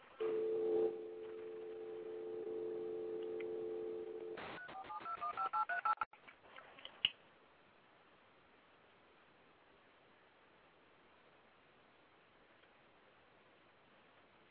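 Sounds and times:
telephone keypad dialing tones: 0:00.2 - 0:06.0.

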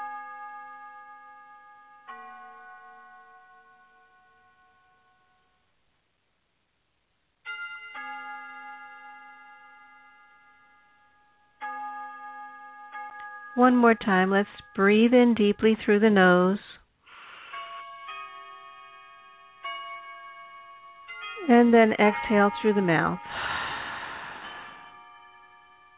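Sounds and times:
bells moved by the wind chiming: 0:00.0 - 0:05.3, 0:07.5 - 0:16.4, 0:17.4 - 0:25.9
speech: 0:13.6 - 0:16.7, 0:21.6 - 0:23.5.

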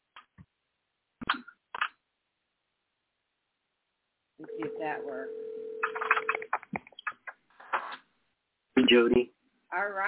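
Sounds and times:
telephone dial tone: 0:04.5 - 0:06.4
speech: 0:04.8 - 0:05.4, 0:08.9 - 0:10.0.

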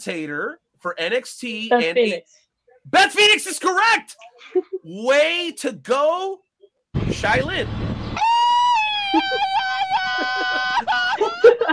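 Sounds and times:
speech: 0:00.0 - 0:08.0
rebel yell sound effect: 0:08.2 - 0:10.8
laughter: 0:08.8 - 0:11.7.

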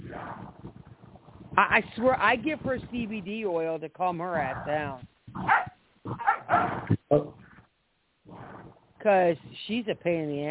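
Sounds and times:
speech: 0:01.6 - 0:05.6, 0:07.1 - 0:07.4, 0:09.0 - 0:10.4
dog barking: 0:05.4 - 0:06.8.

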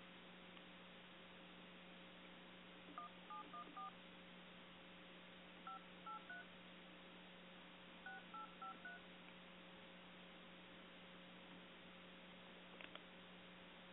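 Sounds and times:
steady low electrical hum: 0:00.0 - 0:13.9
touch-tone dialing on a cell phone: 0:03.0 - 0:03.9, 0:08.1 - 0:09.0.

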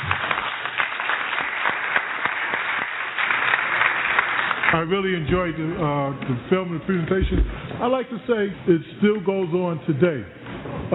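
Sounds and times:
audience round of applause: 0:00.0 - 0:05.3
speech: 0:04.7 - 0:10.9.

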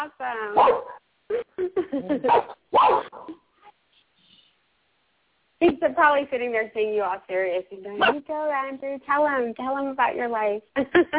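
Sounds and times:
speech: 0:00.0 - 0:02.5, 0:05.6 - 0:11.1
excited pet dog barking, yipping and whining: 0:00.6 - 0:01.0, 0:02.2 - 0:03.3, 0:08.0 - 0:08.2.

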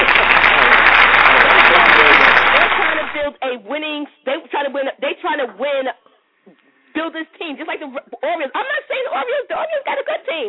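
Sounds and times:
applause sound effect from button: 0:00.0 - 0:03.4
speech: 0:04.7 - 0:10.4.

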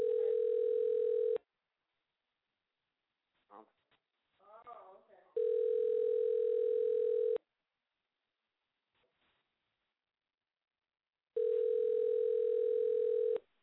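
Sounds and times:
telephone ringback tone of an unanswered call: 0:00.0 - 0:01.4, 0:05.4 - 0:07.4, 0:11.4 - 0:13.4.

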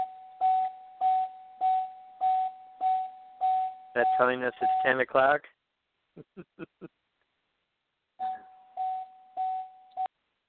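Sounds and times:
background tone from a call feed: 0:00.0 - 0:05.4, 0:08.1 - 0:10.3
speech: 0:04.0 - 0:05.6, 0:06.2 - 0:07.0.

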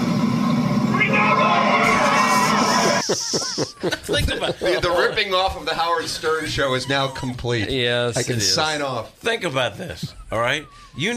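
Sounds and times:
golf crowd cheering after a putt: 0:00.8 - 0:04.0
shouts and whoops: 0:00.9 - 0:03.1
laughter: 0:01.8 - 0:08.6
speech: 0:03.1 - 0:11.1.

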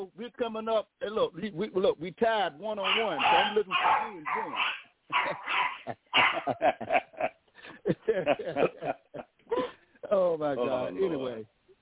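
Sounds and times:
speech: 0:00.0 - 0:07.0
dogs fighting and barking: 0:02.8 - 0:06.8
laughter: 0:05.1 - 0:10.9.

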